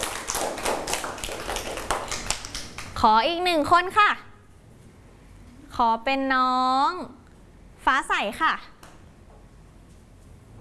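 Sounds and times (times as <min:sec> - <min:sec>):
children clapping hands: 0:00.0 - 0:03.0
speech: 0:03.0 - 0:04.3, 0:05.8 - 0:07.2, 0:07.8 - 0:08.7.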